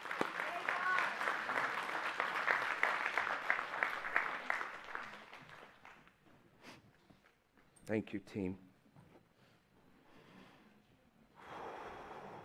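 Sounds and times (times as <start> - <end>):
audience applause: 0.0 - 6.1
speech: 7.9 - 8.7.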